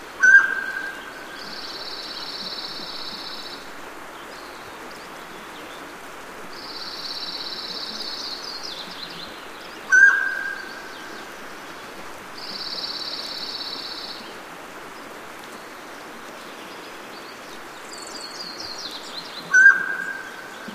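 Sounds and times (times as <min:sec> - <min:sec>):
mountain quail ringing call: 0:00.2 - 0:01.0, 0:09.9 - 0:10.8, 0:19.5 - 0:20.5.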